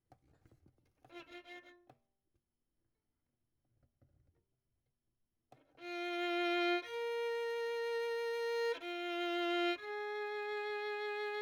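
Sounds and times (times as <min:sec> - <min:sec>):
violin: 0:01.0 - 0:02.0, 0:05.7 - 0:11.4.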